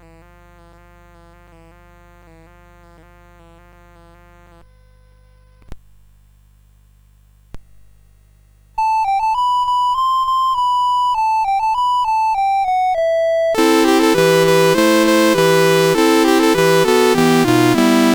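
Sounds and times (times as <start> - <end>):
CSG 8580 sound chip: 8.8 - 18.1.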